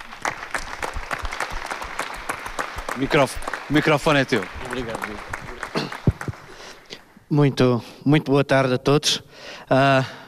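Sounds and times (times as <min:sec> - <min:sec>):
audience clapping: 0:00.0 - 0:07.2
speech: 0:03.0 - 0:05.4, 0:07.3 - 0:10.2.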